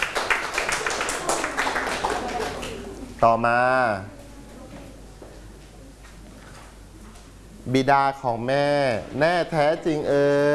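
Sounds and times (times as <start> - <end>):
group of students clapping: 0.0 - 3.2
speech: 3.2 - 4.2, 7.7 - 10.5.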